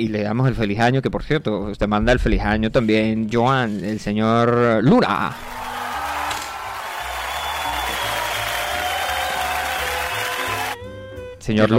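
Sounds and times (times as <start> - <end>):
speech: 0.0 - 5.6, 11.4 - 11.7
applause: 5.4 - 10.8.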